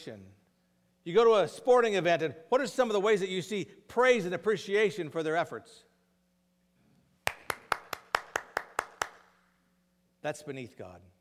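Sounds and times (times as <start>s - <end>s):
speech: 0.0s - 0.4s, 1.0s - 5.9s, 10.2s - 11.1s
hands clapping: 7.2s - 9.4s.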